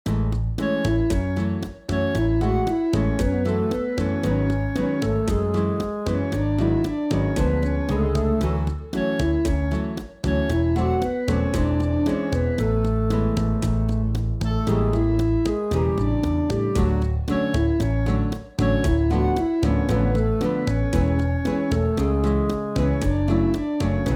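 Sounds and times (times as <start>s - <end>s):
bossa nova record: 0.1s - 24.1s.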